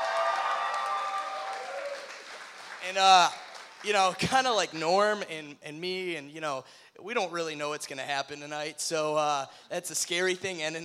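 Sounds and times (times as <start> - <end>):
audience round of applause: 0.0 - 4.2
speech: 2.8 - 10.8.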